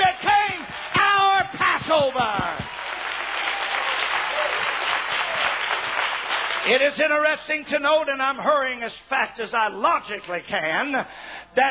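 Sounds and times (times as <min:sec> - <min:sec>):
audience applause: 0:00.0 - 0:06.7
speech: 0:06.7 - 0:11.7.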